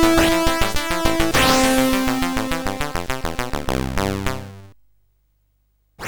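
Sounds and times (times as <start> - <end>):
synthesizer from CSG8580R5 chip: 0.0 - 4.7.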